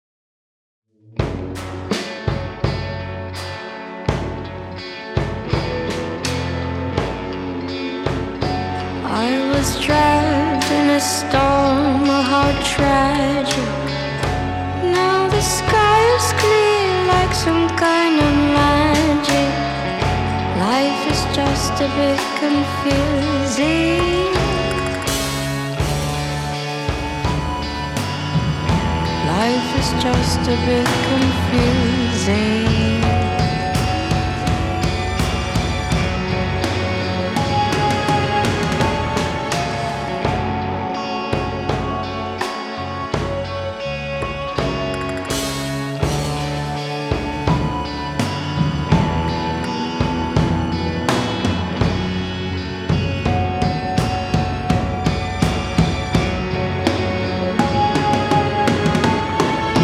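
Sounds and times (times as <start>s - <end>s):
tragic song: 1.4s - 59.8s.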